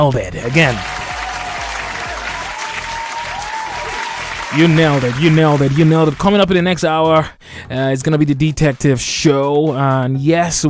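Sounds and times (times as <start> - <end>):
speech: 0.0 - 1.0, 4.5 - 10.6
applause sound effect played by radio host: 0.3 - 6.7.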